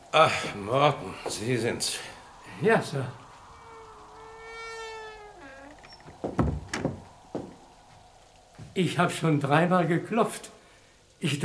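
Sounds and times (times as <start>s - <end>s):
speech: 0.1s - 3.2s, 8.8s - 10.6s, 11.2s - 11.4s
door opening: 3.6s - 7.7s.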